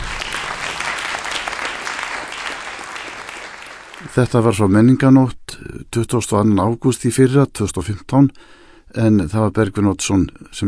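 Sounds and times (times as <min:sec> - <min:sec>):
concert audience applauding after a classical performance: 0:00.0 - 0:04.4
speech: 0:04.1 - 0:10.6.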